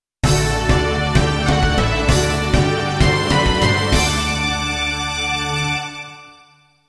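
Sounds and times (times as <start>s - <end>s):
jingle: 0.2s - 6.8s.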